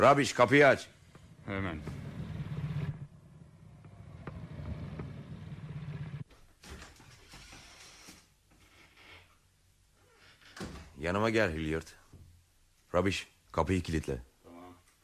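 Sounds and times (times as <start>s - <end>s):
speech: 0.0s - 2.0s, 11.0s - 12.0s, 12.9s - 14.3s
car pulling into a garage: 1.2s - 6.3s.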